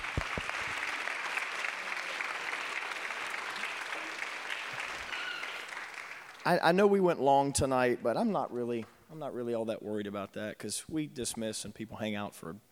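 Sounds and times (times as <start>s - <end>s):
audience applause: 0.0s - 6.6s
speech: 6.4s - 12.7s.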